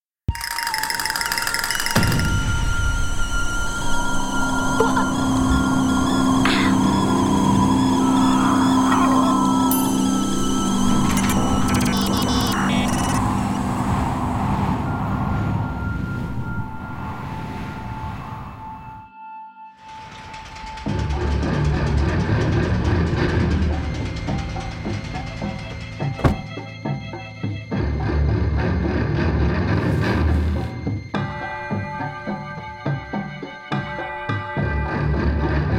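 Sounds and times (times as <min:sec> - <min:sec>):
elevator scene foley: 0:00.3 - 0:14.3, 0:19.8 - 0:27.3
elevator scene score music: 0:00.3 - 0:35.7.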